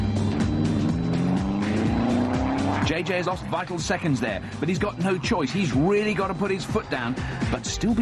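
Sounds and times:
race car spinning out in a turn: 0.2s - 3.5s
speech: 2.9s - 7.9s.

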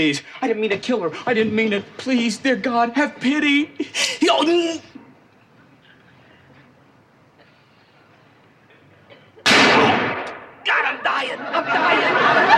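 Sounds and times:
speech: 0.0s - 4.9s
gunshot: 9.5s - 10.5s
laughter: 11.1s - 12.5s.

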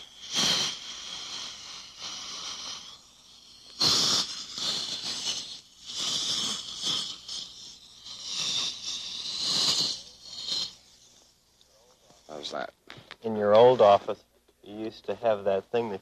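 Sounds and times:
dental suction tube removing water: 0.0s - 12.7s
speech: 12.5s - 15.9s.

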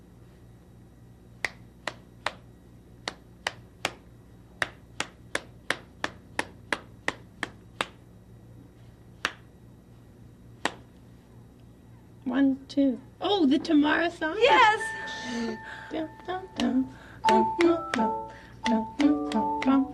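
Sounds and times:
faint low hum: 0.0s - 19.9s
hands clapping a song's rhythm: 1.4s - 8.0s, 9.2s - 9.5s, 10.6s - 11.0s, 16.2s - 19.9s
speech: 12.3s - 18.2s.

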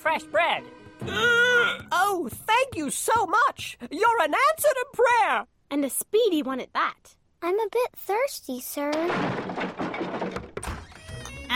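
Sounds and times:
speech: 0.0s - 10.0s
milk cart wagon breaking down with a sharp thunk: 8.9s - 11.2s
milk cart wagon rattling and clattering: 9.1s - 10.7s.

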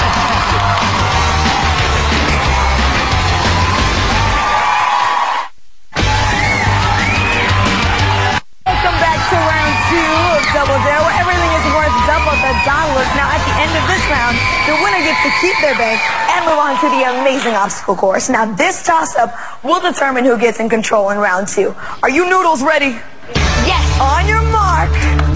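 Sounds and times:
studio audience applause and cheering: 0.0s - 17.9s
speech: 15.4s - 25.3s.

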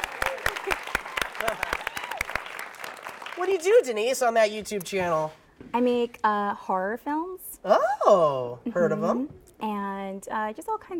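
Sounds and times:
voices cheering: 0.0s - 2.5s
audience applause: 0.0s - 3.9s
speech: 3.4s - 10.9s.

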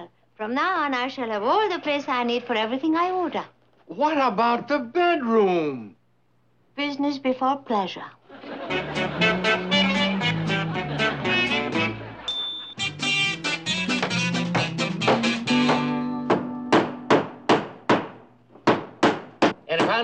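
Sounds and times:
speech: 0.4s - 6.0s, 6.8s - 9.3s
laughter: 8.2s - 12.8s
hammer blows: 13.9s - 19.9s.

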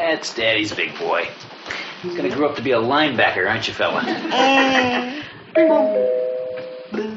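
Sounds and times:
speech: 0.2s - 6.2s
doorbell chiming: 5.6s - 6.9s.

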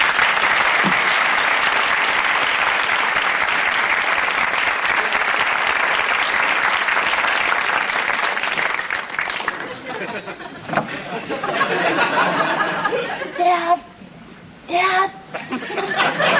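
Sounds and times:
studio audience applause: 0.0s - 10.4s
laughter: 9.4s - 13.4s, 15.3s - 16.3s.

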